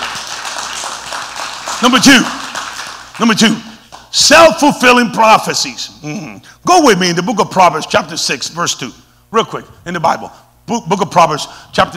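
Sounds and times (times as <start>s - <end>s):
church congregation clapping for the Lord: 0.0s - 4.2s
speech: 1.8s - 2.4s, 3.2s - 11.9s.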